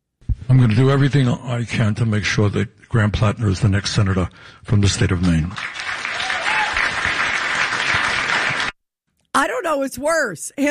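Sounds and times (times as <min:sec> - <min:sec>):
speech: 0:00.5 - 0:05.9, 0:09.4 - 0:10.6
crowd clapping: 0:05.0 - 0:08.8.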